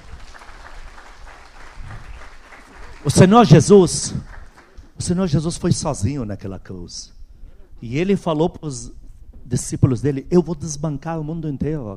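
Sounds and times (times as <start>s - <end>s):
audience applauding: 0.0s - 5.0s
speech: 3.0s - 4.3s, 5.0s - 7.2s, 7.8s - 11.9s.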